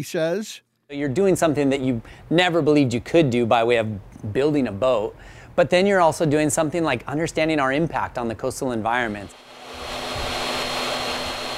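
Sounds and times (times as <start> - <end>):
speech: 0.0 - 10.0
sawing wood: 9.1 - 11.5
sanding wood: 9.2 - 11.5.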